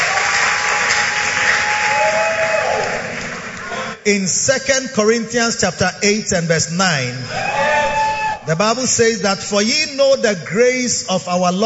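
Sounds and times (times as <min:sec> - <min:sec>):
audience clapping hands: 0:00.0 - 0:03.9
speech: 0:04.0 - 0:07.6, 0:08.5 - 0:11.6.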